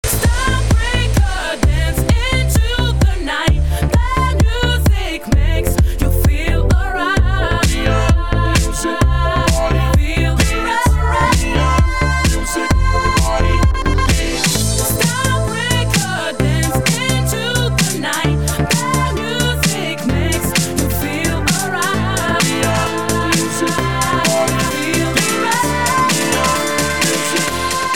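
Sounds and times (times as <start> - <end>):
remix music: 0.0 - 27.9.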